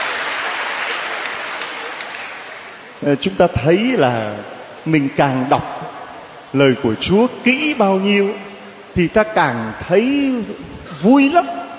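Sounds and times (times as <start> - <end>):
audience applause at a church gathering: 0.0 - 3.0
speech: 3.0 - 11.6.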